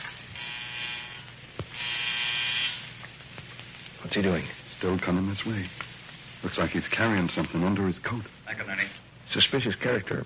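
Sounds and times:
electric buzzer: 0:00.0 - 0:03.0
speech: 0:04.1 - 0:10.2.

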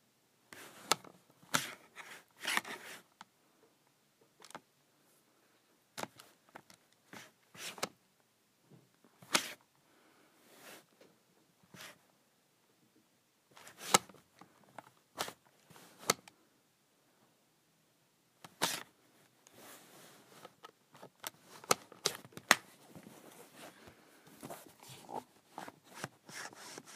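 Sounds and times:
calculator cover sliding and clicking: 0:00.6 - 0:03.0, 0:07.1 - 0:08.0, 0:09.2 - 0:09.6, 0:13.6 - 0:14.2, 0:15.2 - 0:16.3, 0:18.4 - 0:18.9, 0:19.5 - 0:26.9.

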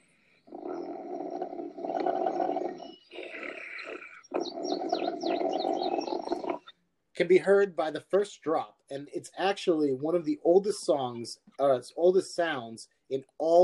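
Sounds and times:
Rufus the bear snoring: 0:00.0 - 0:06.7
speech: 0:07.2 - 0:13.6.

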